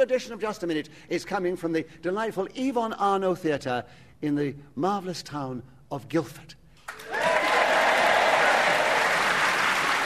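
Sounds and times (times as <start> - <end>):
speech: 0.0 - 7.4
theatre audience in Guildford, Surrey applauding at a comedy panel show: 6.9 - 10.0.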